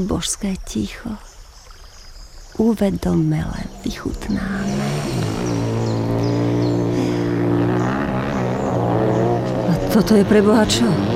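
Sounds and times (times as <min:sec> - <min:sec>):
speech: 0:00.0 - 0:01.3, 0:02.6 - 0:05.6, 0:10.0 - 0:11.1
motorcycles driving by: 0:03.5 - 0:11.1.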